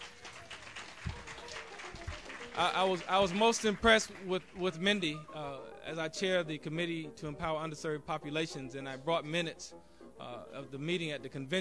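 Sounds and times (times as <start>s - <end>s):
faint audience applause at an organization's convention: 0.0s - 4.9s
speech: 2.6s - 11.5s.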